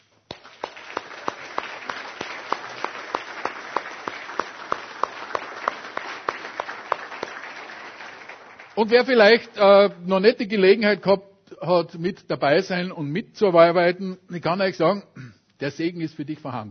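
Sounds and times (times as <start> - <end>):
audience applause: 0.3 - 10.0
speech: 8.8 - 16.7.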